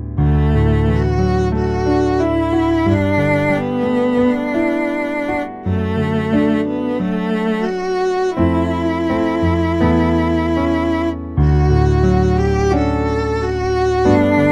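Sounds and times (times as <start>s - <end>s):
viola: 0.2s - 14.4s.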